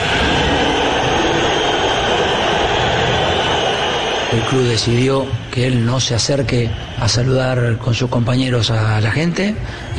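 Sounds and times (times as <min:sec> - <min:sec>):
stadium crowd whistling at a player: 0:00.0 - 0:09.9
speech: 0:04.4 - 0:09.9.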